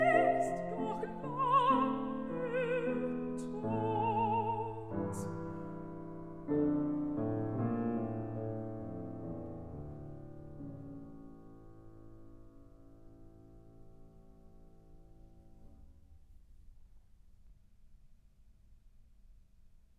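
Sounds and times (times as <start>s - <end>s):
person singing: 0.0s - 5.6s
piano: 0.0s - 16.3s.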